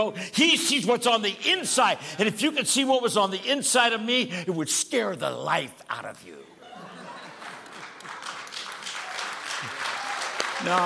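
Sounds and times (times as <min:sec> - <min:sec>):
speech: 0:00.0 - 0:06.5, 0:10.6 - 0:10.8
laughter: 0:06.6 - 0:08.4
audience applause: 0:07.1 - 0:10.8.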